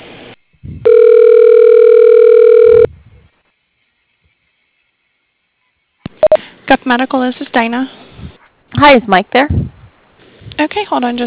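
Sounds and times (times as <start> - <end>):
electronic telephone tone as a call connects to customer service: 0.8 - 2.9
speech: 6.9 - 8.0, 8.8 - 9.7, 10.6 - 11.2
noises: 7.9 - 11.2.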